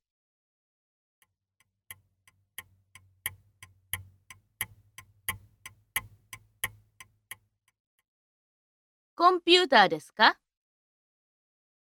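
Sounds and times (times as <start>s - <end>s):
clock ticking: 1.9s - 7.4s
speech: 9.2s - 10.4s.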